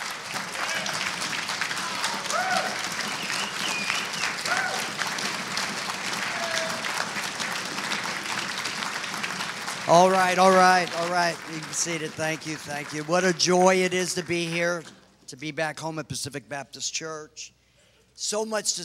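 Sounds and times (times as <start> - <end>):
Baptist church congregation applauding: 0.0 - 15.0
speech: 9.9 - 17.6, 18.2 - 18.8.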